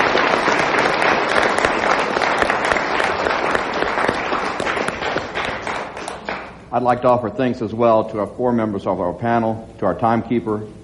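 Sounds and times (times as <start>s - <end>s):
studio audience applauding forum candidates: 0.0s - 6.6s
speech: 6.8s - 10.8s.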